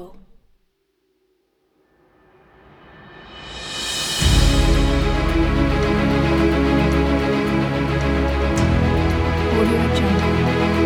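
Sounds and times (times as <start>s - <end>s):
epic drum kit: 3.0s - 10.8s.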